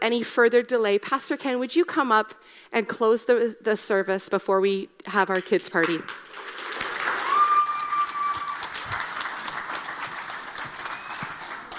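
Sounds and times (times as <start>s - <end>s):
speech: 0.0s - 6.6s
audience applauding: 6.2s - 11.7s.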